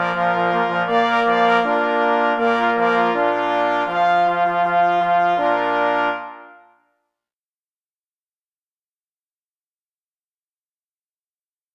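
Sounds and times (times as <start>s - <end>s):
march: 0.0s - 6.6s.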